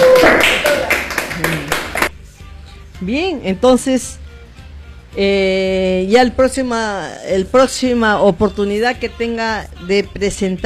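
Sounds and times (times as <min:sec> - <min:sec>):
studio audience clapping for a doctor: 0:00.0 - 0:02.2
speech: 0:03.0 - 0:04.2, 0:05.2 - 0:10.6.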